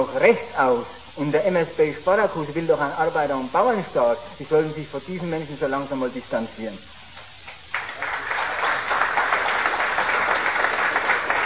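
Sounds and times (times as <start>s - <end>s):
speech: 0.0s - 6.9s
audience applause: 7.7s - 11.4s.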